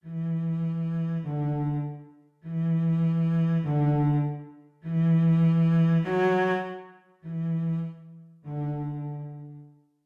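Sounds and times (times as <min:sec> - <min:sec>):
cello sight reading exercise: 0:00.0 - 0:09.8.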